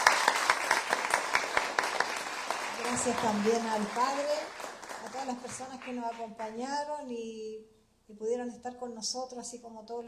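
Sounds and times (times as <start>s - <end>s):
audience applause: 0.0s - 6.3s
speech: 3.0s - 10.0s.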